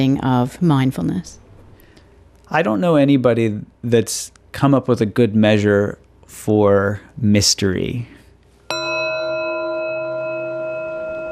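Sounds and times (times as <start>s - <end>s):
speech: 0.0s - 1.4s, 2.5s - 8.2s
meditation bell ringing: 8.7s - 11.2s.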